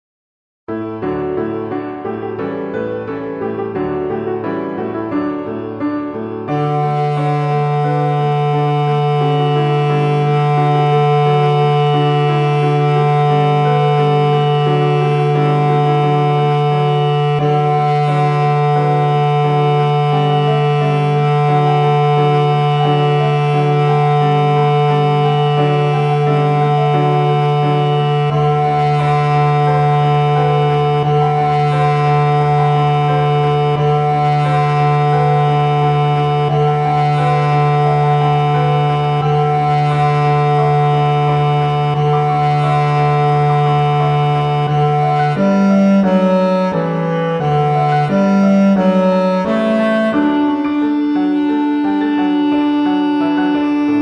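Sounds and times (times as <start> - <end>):
bass: 0.7 - 54.0.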